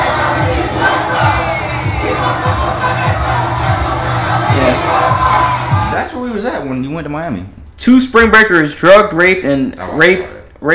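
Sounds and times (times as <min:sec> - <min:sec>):
large street crowd cheering and shouting: 0:00.0 - 0:06.0
speech: 0:06.3 - 0:10.7.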